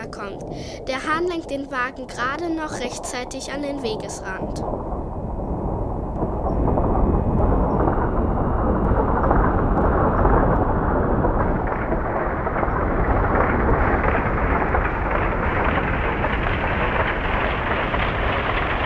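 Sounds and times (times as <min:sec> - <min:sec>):
speech: 0:00.0 - 0:04.9
thunderous rumbling: 0:00.0 - 0:18.8.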